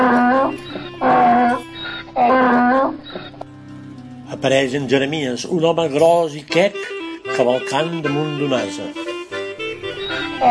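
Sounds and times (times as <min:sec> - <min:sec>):
animal roar or bellow in a forest: 0:00.0 - 0:03.4
speech: 0:04.4 - 0:09.0.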